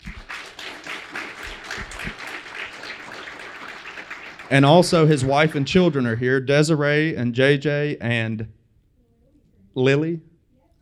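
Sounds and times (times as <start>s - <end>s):
audience round of applause: 0.0s - 5.9s
speech: 4.5s - 8.6s, 9.8s - 10.3s.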